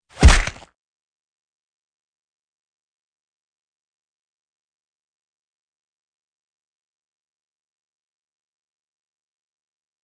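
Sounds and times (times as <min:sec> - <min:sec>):
fight sounds: 0:00.1 - 0:00.6.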